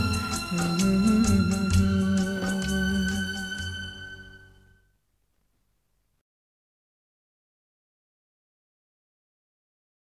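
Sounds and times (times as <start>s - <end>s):
man's voice: 0.0s - 4.0s.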